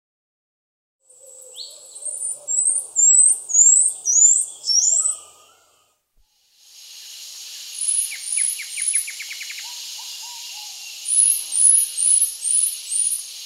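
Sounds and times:
pygmy marmoset in South American rainforest: 1.5s - 5.2s, 7.8s - 13.2s.

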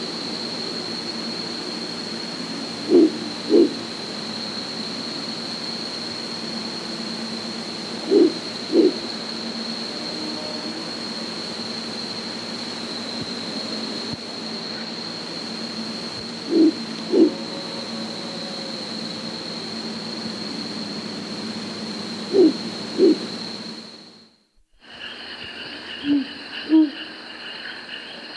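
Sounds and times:
Azara's night monkey low hoots in the South American rainforest: 2.8s - 3.8s, 8.1s - 9.0s, 16.5s - 17.5s, 22.3s - 23.2s.

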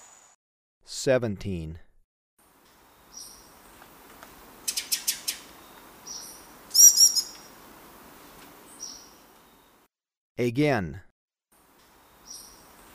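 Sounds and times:
speech: 1.0s - 1.9s, 10.4s - 11.1s
Ochre-breasted tanager calls: 4.7s - 7.5s.

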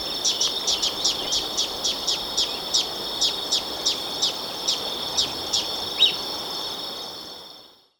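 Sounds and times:
Olive-chested Flycatcher in Ecuador: 0.0s - 6.3s.

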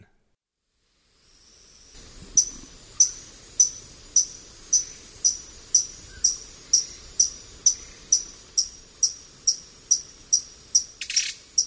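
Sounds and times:
Yellow-browed tody-flycatcher calling with sharp high ticking notes in eastern lowlands of South America: 2.3s - 11.6s.

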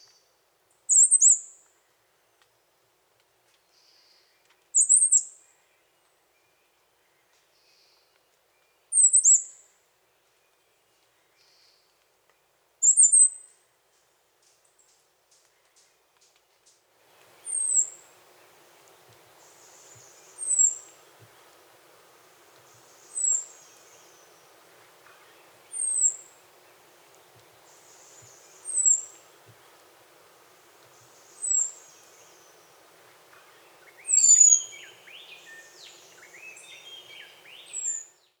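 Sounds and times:
birds of the Costa Rican cloud forest singing: 17.3s - 38.1s.

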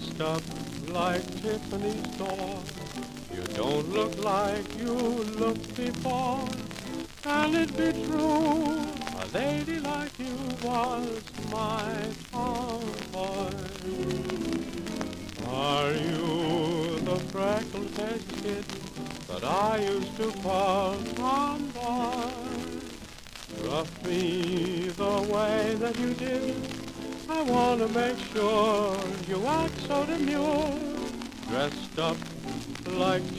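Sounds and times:
jazz orchestra with vocals from 1931: 0.0s - 33.3s.

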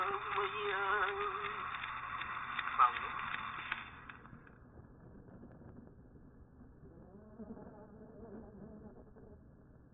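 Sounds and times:
Hawaiian prayer chant to a goddess: 0.0s - 3.5s.

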